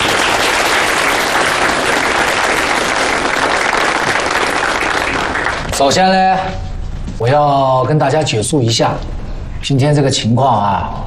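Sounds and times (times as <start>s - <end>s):
audience applause: 0.0s - 5.9s
speech: 5.8s - 6.6s, 7.2s - 11.0s.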